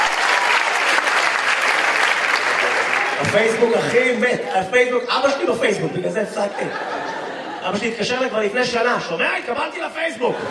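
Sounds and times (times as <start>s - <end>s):
audience applause: 0.0s - 4.3s
speech: 3.3s - 7.0s, 7.6s - 10.4s
laughter: 3.3s - 9.1s, 9.8s - 10.4s.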